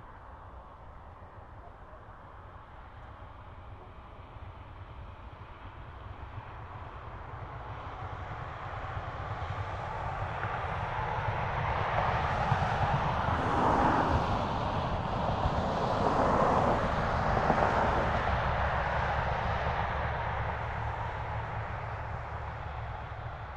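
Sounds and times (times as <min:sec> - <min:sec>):
medium far traffic on a bumpy two-lane country road: 0:00.0 - 0:23.5.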